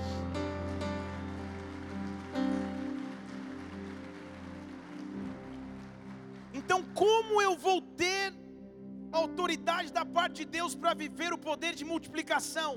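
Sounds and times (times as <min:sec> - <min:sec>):
sustained keyboard chords: 0:00.0 - 0:12.7
audience applause: 0:00.3 - 0:07.6
speech: 0:06.7 - 0:08.3, 0:09.2 - 0:12.7.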